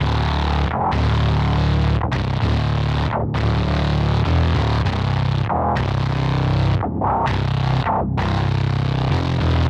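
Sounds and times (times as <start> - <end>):
synth bass: 0.0 - 9.6.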